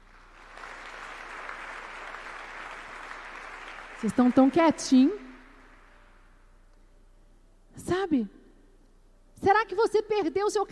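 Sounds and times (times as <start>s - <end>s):
audience applause: 0.0s - 4.7s
speech: 4.0s - 5.2s, 8.1s - 8.4s, 9.4s - 10.7s.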